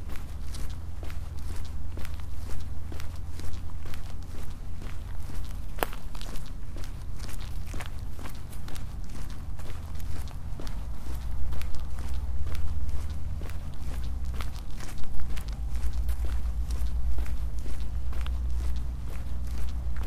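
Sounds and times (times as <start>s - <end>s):
crunchy footsteps of someone walking: 0.0s - 20.0s
low rumble: 9.4s - 20.0s.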